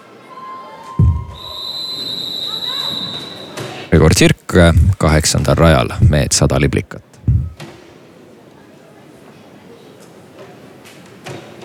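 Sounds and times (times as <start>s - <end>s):
fans whistling in a swimming arena: 1.0s - 3.6s
speech: 3.9s - 7.0s.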